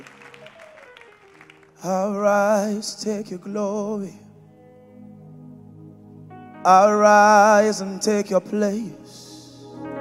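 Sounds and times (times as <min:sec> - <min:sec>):
audience clapping: 0:00.0 - 0:02.2
speech: 0:01.8 - 0:04.2, 0:06.6 - 0:09.2.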